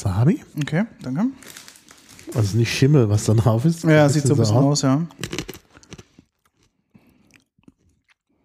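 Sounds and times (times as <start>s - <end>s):
speech: 0.0s - 1.6s, 2.3s - 5.6s
chewing small round wasabi-coated dried peas: 5.1s - 8.4s.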